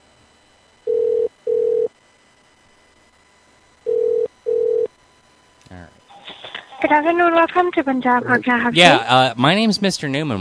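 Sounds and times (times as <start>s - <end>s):
telephone ring tone over the line: 0.8s - 1.9s, 3.8s - 4.9s
speech: 6.8s - 10.3s.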